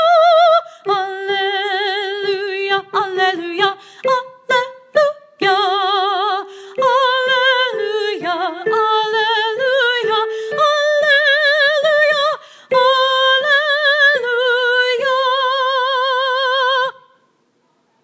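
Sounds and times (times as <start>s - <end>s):
soprano singing at a wedding: 0.0s - 17.1s.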